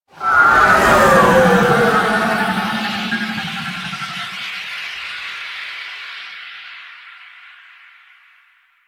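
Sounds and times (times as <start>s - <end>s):
vehicles: 0.2s - 4.5s
aircraft flight: 0.2s - 4.6s.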